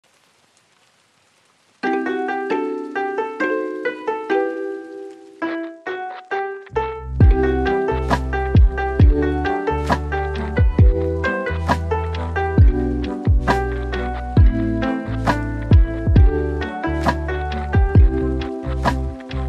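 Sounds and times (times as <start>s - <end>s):
lofi music: 1.8s - 19.4s.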